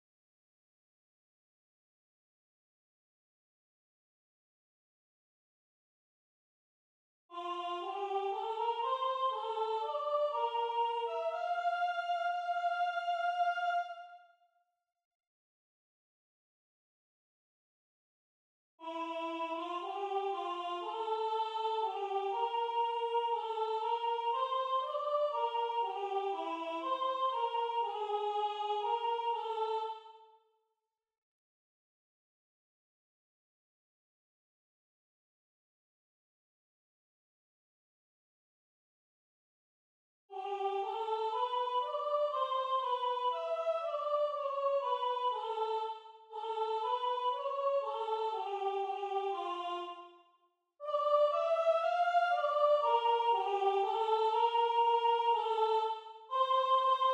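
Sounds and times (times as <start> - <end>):
soprano singing: 7.3 - 14.0, 18.8 - 30.2, 40.3 - 50.0, 50.8 - 57.1.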